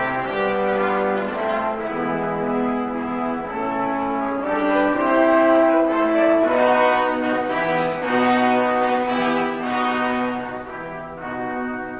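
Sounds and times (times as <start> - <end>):
festival brass music: 0.0 - 11.9.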